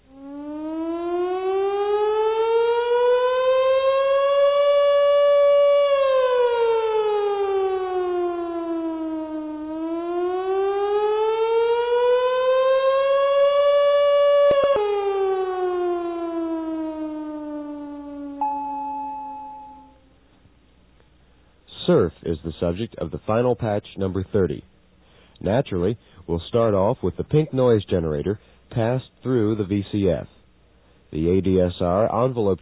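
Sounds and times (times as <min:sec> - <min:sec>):
synthesized screaming siren with flutter: 0:00.0 - 0:20.1
speech: 0:22.3 - 0:24.7, 0:25.4 - 0:30.3, 0:31.1 - 0:32.5.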